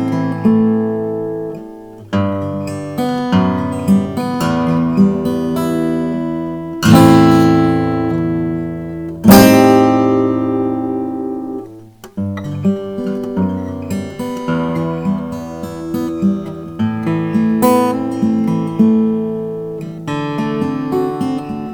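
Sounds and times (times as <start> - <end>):
handmade mini grand symphony acoustic guitar: 0.0 - 21.7.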